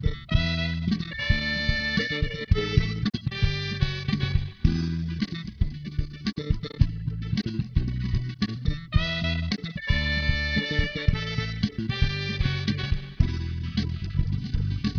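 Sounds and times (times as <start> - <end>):
music: 0.0 - 14.9.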